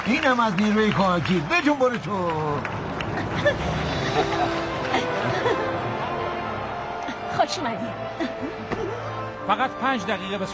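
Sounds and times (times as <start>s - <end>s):
large stadium crowd cheering: 0.0s - 7.0s
speech: 0.1s - 4.6s, 7.5s - 10.5s
laughter: 2.3s - 7.3s, 8.1s - 9.2s.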